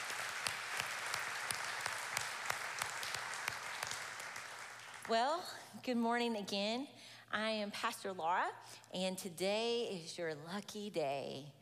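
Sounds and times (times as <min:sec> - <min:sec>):
audience applause: 0:00.0 - 0:05.1
speech: 0:05.1 - 0:11.6.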